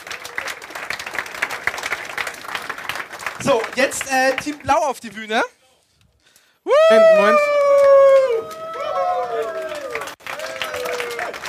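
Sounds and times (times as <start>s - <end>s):
crowd applauding: 0.0s - 5.0s, 6.8s - 11.4s
speech: 3.4s - 5.6s, 6.9s - 7.5s.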